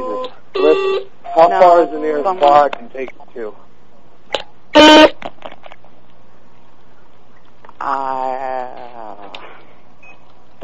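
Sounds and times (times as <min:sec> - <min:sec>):
beeping: 0:00.0 - 0:02.8
speech: 0:00.8 - 0:03.7.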